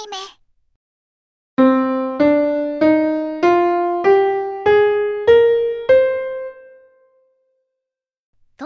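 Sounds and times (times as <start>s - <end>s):
do re mi fa sol la ti do musical scale: 1.6s - 7.1s.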